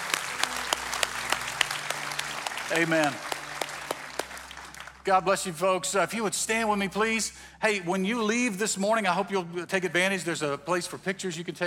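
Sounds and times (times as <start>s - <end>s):
audience applauding: 0.0s - 5.2s
speech: 2.7s - 3.3s, 5.0s - 11.6s.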